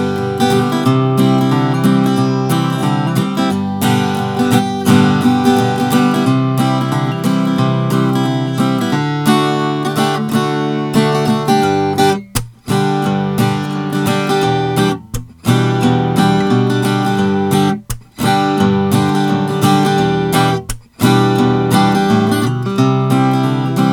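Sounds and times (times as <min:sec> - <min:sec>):
acoustic guitar with solid Adirondack spruce top playing: 0:00.0 - 0:23.9.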